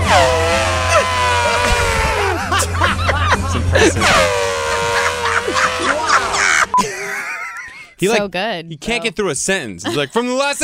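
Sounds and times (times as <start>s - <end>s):
man imitating an elephant mating call: 0.0s - 2.5s, 3.9s - 6.7s
laughter: 0.1s - 8.0s, 9.8s - 10.4s
speech: 8.0s - 10.6s.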